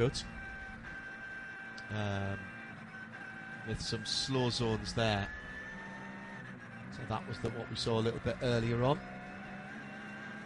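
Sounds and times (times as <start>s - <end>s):
speech: 0.0s - 0.4s, 1.9s - 2.5s, 3.6s - 5.4s, 6.9s - 9.1s
number 900 Porsche 911 GT3 Cup race car engine droning: 0.0s - 10.4s.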